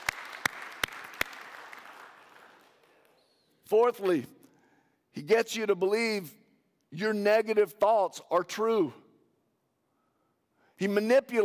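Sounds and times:
audience clapping: 0.0s - 3.2s
speech: 3.7s - 4.4s, 5.2s - 9.0s, 10.8s - 11.4s.

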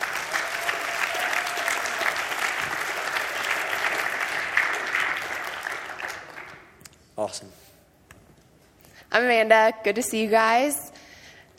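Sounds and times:
audience applause: 0.0s - 6.7s
speech: 7.2s - 7.6s, 9.1s - 10.8s.

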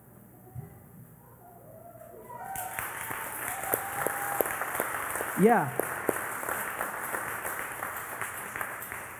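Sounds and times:
audience clapping: 2.2s - 9.1s
speech: 5.4s - 5.8s.

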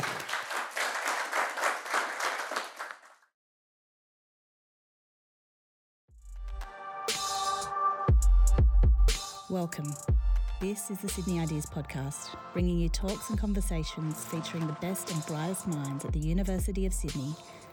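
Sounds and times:
audience applause after a talk at the University of Sydney: 0.0s - 3.2s
music: 6.1s - 17.7s
speech: 9.5s - 17.6s.

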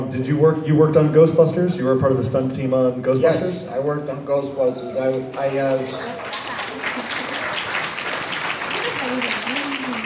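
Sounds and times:
speech: 0.1s - 6.3s
crowd applause: 5.7s - 10.0s.

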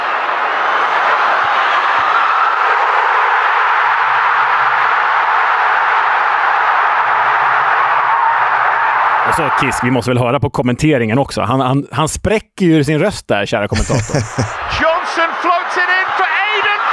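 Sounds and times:
stadium crowd cheering a goal: 0.0s - 10.2s, 13.8s - 16.9s
speech: 9.4s - 16.9s
laughter: 13.7s - 16.9s.

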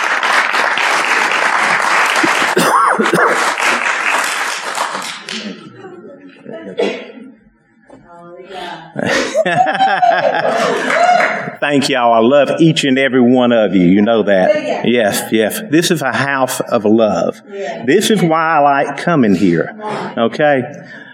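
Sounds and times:
congregation clapping to welcome a speaker to the pulpit: 0.0s - 5.8s, 10.5s - 11.6s
people chuckling: 2.1s - 3.8s, 5.2s - 7.5s, 8.8s - 11.6s
speech: 11.6s - 21.0s.

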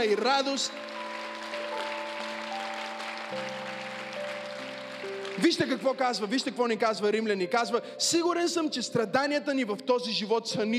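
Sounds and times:
speech: 0.0s - 1.0s, 3.3s - 3.6s, 5.4s - 10.7s
audience applauding: 0.0s - 6.4s.

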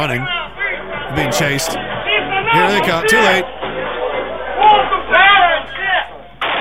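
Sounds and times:
speech: 0.0s - 0.5s, 1.1s - 1.9s, 2.5s - 3.6s
people shouting: 0.0s - 6.2s
guns fired into the air as a party breaks up: 6.4s - 6.6s.

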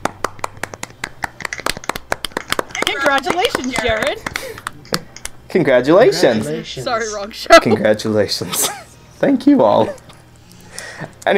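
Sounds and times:
small group clapping: 0.0s - 5.4s
speech: 2.9s - 10.0s.

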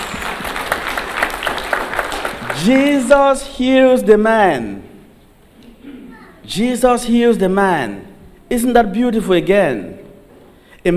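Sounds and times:
people clapping: 0.0s - 3.4s
speech: 2.6s - 4.9s, 6.5s - 10.0s.

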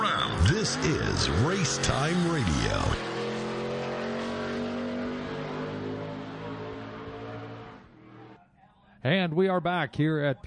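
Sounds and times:
race cars roaring around Peterborough Speedway: 0.0s - 8.4s
speech: 0.6s - 3.1s, 9.0s - 10.4s.

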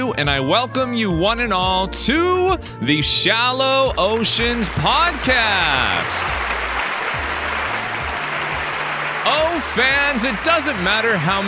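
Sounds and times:
speech: 0.1s - 6.6s, 9.3s - 11.4s
audience applause: 4.0s - 11.4s.

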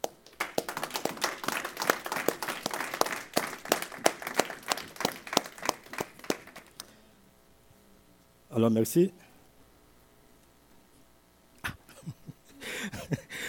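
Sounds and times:
congregation clapping during a morning church service: 0.0s - 6.9s
speech: 8.6s - 9.2s.

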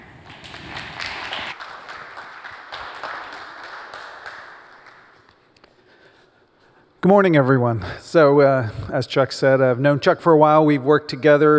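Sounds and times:
audience applause welcoming a reverend to the stage: 0.0s - 5.4s
speech: 7.0s - 11.5s.

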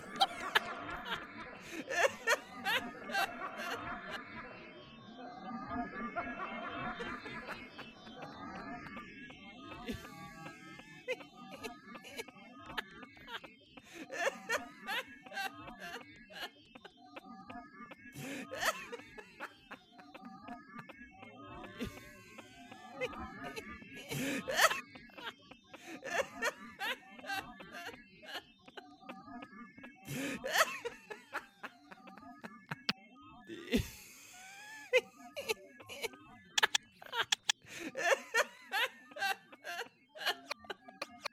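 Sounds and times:
audience laughter in a theatre: 0.0s - 4.6s, 6.1s - 9.0s, 9.7s - 17.0s, 18.2s - 20.6s, 21.6s - 28.9s, 30.1s - 41.3s
sharp clicks and claps: 36.6s - 37.7s.

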